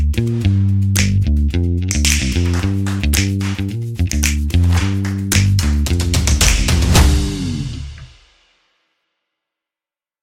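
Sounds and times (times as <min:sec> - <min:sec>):
slap bass logo: 0:00.0 - 0:08.1.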